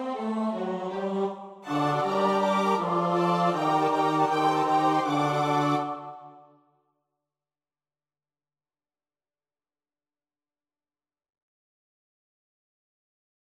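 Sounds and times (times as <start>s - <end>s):
SATB choir part practice: 0.0s - 6.5s.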